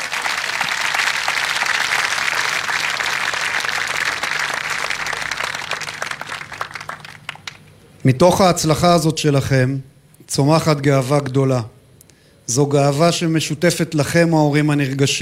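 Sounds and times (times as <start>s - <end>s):
audience applause: 0.0s - 7.7s
speech: 8.0s - 11.8s, 12.5s - 15.1s.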